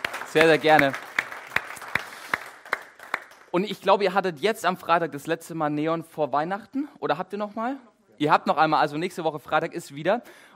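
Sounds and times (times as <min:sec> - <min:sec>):
audience applause: 0:00.0 - 0:03.5
speech: 0:00.3 - 0:01.0, 0:03.6 - 0:10.5.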